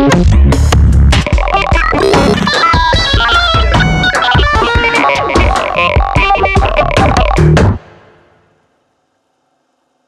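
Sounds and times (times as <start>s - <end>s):
drum computer beat: 0.2s - 7.8s
synthesizer: 1.4s - 4.9s.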